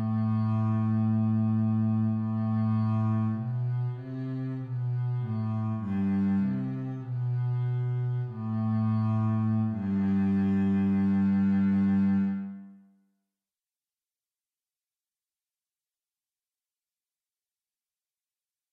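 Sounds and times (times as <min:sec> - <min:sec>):
bass: 0:00.0 - 0:12.8.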